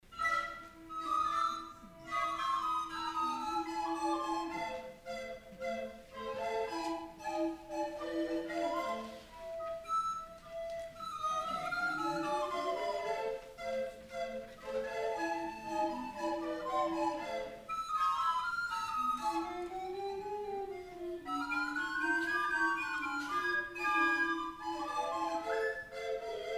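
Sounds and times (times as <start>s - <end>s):
flute choir playing a tango: 0.0s - 26.5s.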